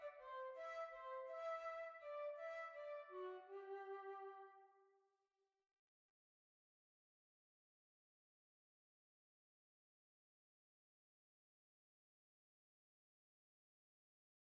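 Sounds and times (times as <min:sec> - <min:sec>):
waltz music: 0:00.0 - 0:04.5.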